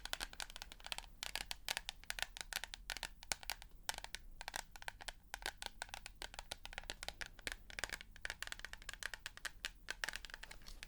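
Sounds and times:
rapid irregular tapping clicks: 0.0s - 10.8s.

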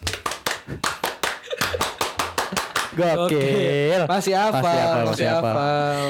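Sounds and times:
scout rhythmic group clapping: 0.0s - 3.7s
speech: 3.0s - 6.0s.

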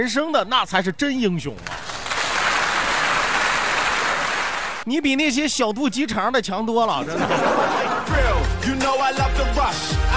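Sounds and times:
speech: 0.0s - 1.8s, 4.8s - 10.1s
applause: 1.6s - 4.8s
laughter: 6.8s - 8.7s.

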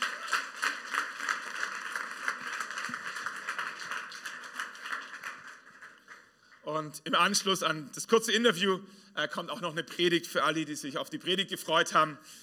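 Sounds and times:
audience applause: 0.0s - 6.3s
speech: 6.7s - 12.4s.

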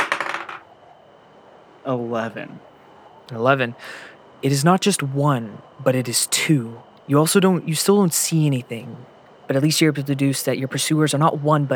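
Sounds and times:
dice clattering across a hard surface: 0.0s - 0.6s
speech: 1.8s - 2.7s, 3.3s - 11.7s.

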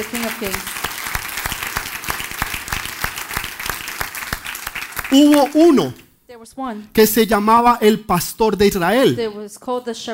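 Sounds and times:
speech: 0.0s - 0.8s, 5.1s - 10.1s
audience applauding loudly: 0.0s - 6.0s.

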